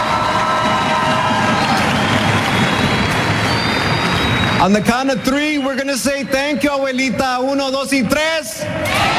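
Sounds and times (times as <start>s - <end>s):
audience applause: 0.0s - 5.8s
audience cheering: 0.0s - 6.9s, 8.8s - 9.1s
speech: 4.6s - 9.1s.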